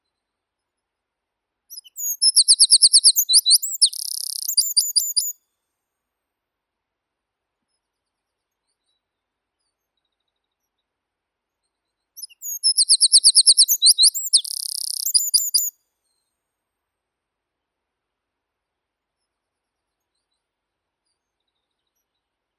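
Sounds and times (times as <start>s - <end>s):
wren Troglodytes troglodytes: 1.8s - 5.3s, 12.2s - 15.7s.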